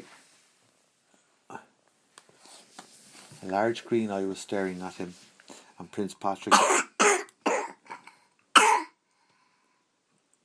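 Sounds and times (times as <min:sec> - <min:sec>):
speech: 0:03.4 - 0:06.9
short harsh coughs: 0:06.5 - 0:09.0.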